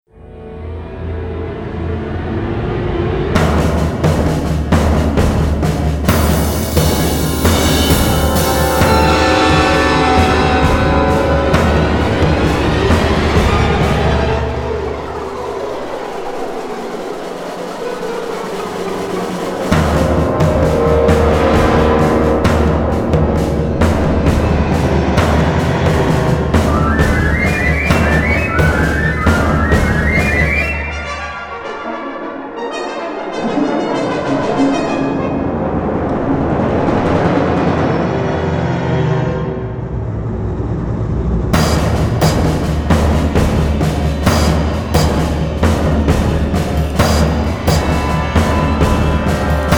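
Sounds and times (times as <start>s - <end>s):
tension music: 0.1s - 49.7s.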